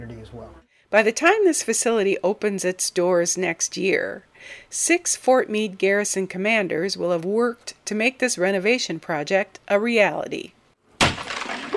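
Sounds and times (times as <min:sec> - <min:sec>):
speech: 0:00.0 - 0:10.6
sledgehammer punching holes in the walls of Kuhn Hall: 0:11.0 - 0:11.7.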